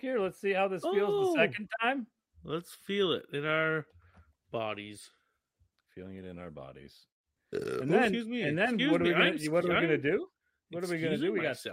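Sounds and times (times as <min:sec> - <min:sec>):
speech: 0:00.0 - 0:05.2, 0:06.0 - 0:11.7
long loud voiced burp: 0:07.5 - 0:08.2.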